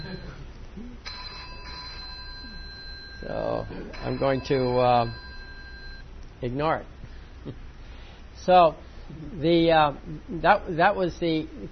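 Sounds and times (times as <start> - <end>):
cell phone ringing: 0.0 - 0.4, 1.1 - 6.0
speech: 3.2 - 5.2, 6.4 - 7.6, 8.4 - 11.7.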